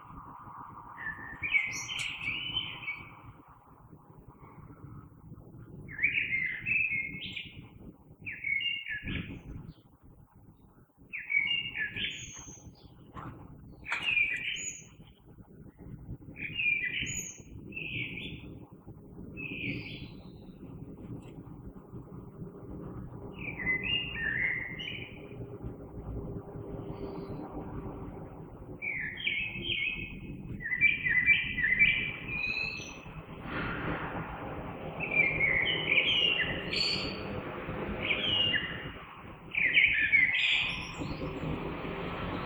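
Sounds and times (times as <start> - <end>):
low traffic-like background rumble: 0.0 - 42.4
common blackbird singing flutey phrases: 1.0 - 3.2, 5.9 - 7.6, 8.3 - 9.5, 11.1 - 15.0, 15.8 - 18.6, 19.4 - 20.6, 23.2 - 25.7, 28.8 - 33.6, 34.9 - 41.7.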